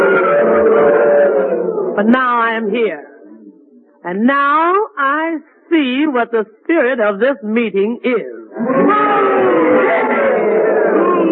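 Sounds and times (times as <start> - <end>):
crowd booing and hissing: 0.0 - 2.0, 8.5 - 11.3
speech: 2.0 - 3.1, 4.1 - 10.1.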